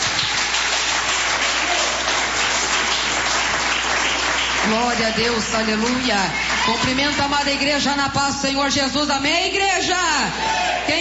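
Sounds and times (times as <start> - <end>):
audience applause: 0.0 - 7.6
speech: 4.7 - 10.9.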